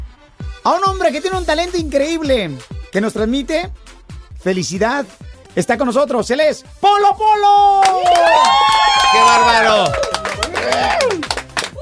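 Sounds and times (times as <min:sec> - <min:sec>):
speech: 0:00.7 - 0:11.3
whistle or cheer: 0:07.7 - 0:11.2
applause, hands clapping: 0:07.8 - 0:11.7.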